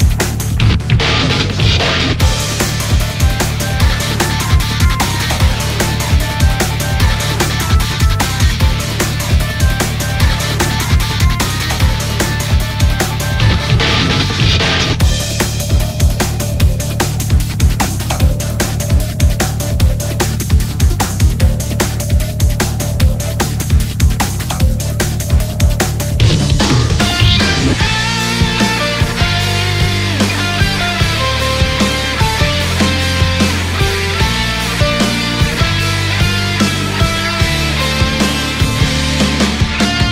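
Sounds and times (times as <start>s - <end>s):
laser beam instrumental loop: 0.0s - 40.1s.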